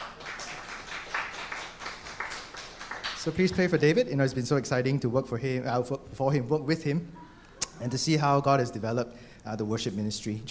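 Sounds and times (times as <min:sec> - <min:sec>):
crowd applauding: 0:00.0 - 0:03.9
speech: 0:03.2 - 0:07.2, 0:07.8 - 0:10.4.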